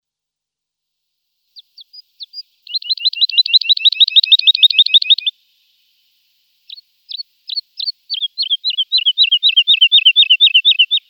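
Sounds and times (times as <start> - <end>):
woodlark song: 1.4 - 5.4, 6.6 - 11.0.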